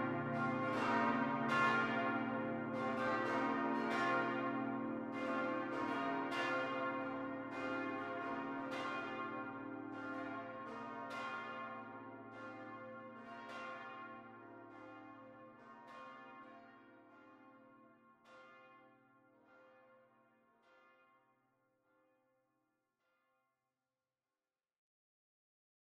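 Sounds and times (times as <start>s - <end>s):
monastery church bells: 0.0s - 20.0s.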